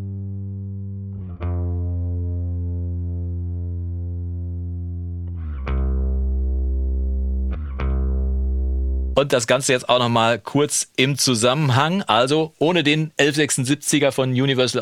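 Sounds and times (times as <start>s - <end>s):
heavily compressed bass tone in a mix: 0.0s - 9.2s
plucked bass attacks: 0.9s - 9.4s
speech: 9.2s - 14.8s.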